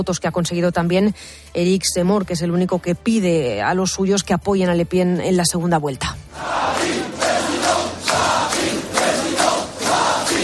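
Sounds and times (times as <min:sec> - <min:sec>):
speech: 0:00.0 - 0:07.0
large crowd chanting at rally: 0:06.3 - 0:10.4.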